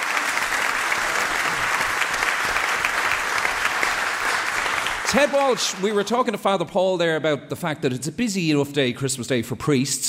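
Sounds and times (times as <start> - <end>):
audience applause: 0.0 - 6.5
speech: 5.1 - 10.0.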